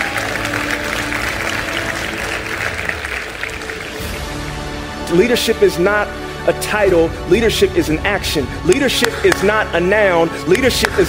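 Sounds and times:
audience applause: 0.0 - 4.6
speech: 5.1 - 11.0.

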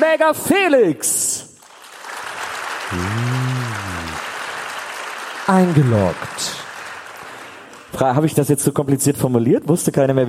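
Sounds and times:
speech: 0.0 - 1.5, 2.9 - 3.3, 5.5 - 6.6, 8.0 - 10.2
live audience applause: 1.6 - 8.0.

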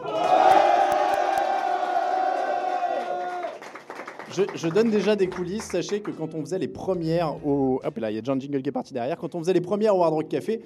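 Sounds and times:
live audience cheering and making noise: 0.0 - 5.1
speech: 4.4 - 10.6.

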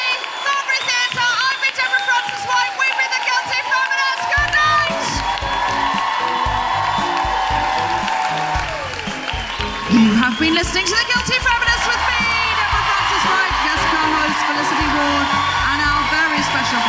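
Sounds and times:
audience applause: 0.0 - 16.8
speech: 16.6 - 16.8.

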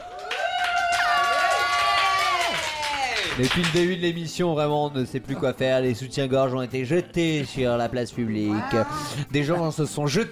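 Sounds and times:
high whoops and shouts: 0.0 - 3.3
studio audience cheering wildly at a food and music show: 0.0 - 4.0
speech: 3.4 - 10.2.

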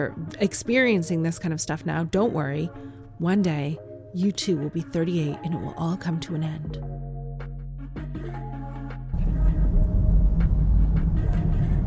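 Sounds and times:
speech: 0.0 - 7.0
car driving noise: 9.2 - 11.8.

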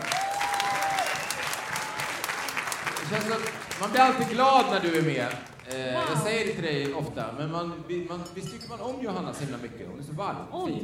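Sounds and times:
audience applause: 0.0 - 7.0
speech: 3.1 - 10.8.

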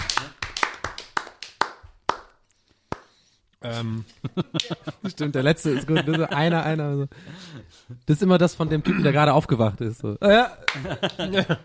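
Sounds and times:
small round of hand clapping: 0.0 - 3.2, 4.5 - 4.8, 10.7 - 11.4
speech: 3.6 - 11.6
laughter: 4.1 - 6.6, 10.6 - 11.6.

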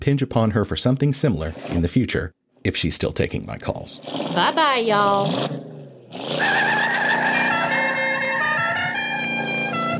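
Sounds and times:
speech: 0.0 - 7.0
car horn blaring a melody: 6.4 - 9.9.

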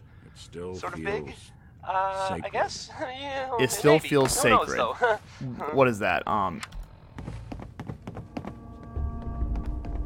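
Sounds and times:
speech: 0.4 - 6.8
laughter: 3.7 - 5.5
slow uneven creepy footsteps: 7.0 - 10.0.

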